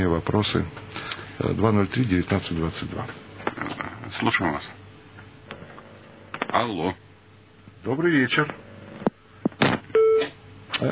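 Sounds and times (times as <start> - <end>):
speech: 0.1 - 4.8, 6.5 - 7.0, 7.8 - 8.6
telephone-line beep after a radio call-in caller is cut off: 10.0 - 10.3.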